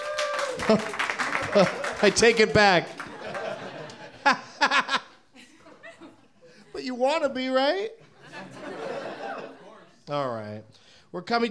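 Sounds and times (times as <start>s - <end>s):
vocal whoop: 0.0s - 0.9s
audience applause: 0.0s - 4.2s
laughter: 0.4s - 10.0s
speech: 0.6s - 3.0s, 4.2s - 4.4s, 6.9s - 8.0s, 10.1s - 11.4s.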